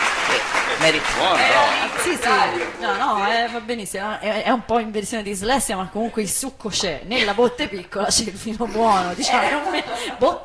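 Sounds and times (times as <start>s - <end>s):
audience applause: 0.0s - 3.4s
speech: 0.8s - 10.4s
laughter: 8.7s - 10.4s.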